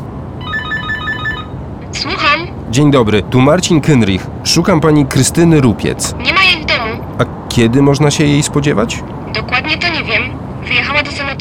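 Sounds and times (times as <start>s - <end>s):
low hum: 0.0s - 11.4s
intercom buzzer ringing: 0.4s - 1.6s
speech: 2.0s - 6.6s, 7.2s - 9.8s.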